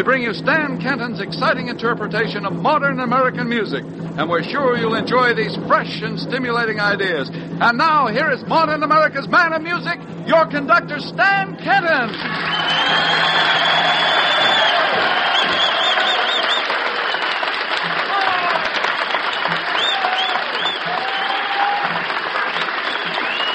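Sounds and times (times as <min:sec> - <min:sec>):
speech: 0:00.0 - 0:14.0
audience applause at the Carousel Ballroom: 0:12.1 - 0:23.5.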